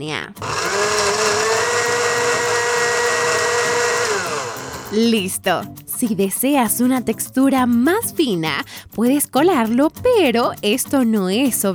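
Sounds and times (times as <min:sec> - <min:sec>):
speech: 0:00.0 - 0:01.4, 0:04.9 - 0:11.7
blender processing vegetables: 0:00.4 - 0:05.1.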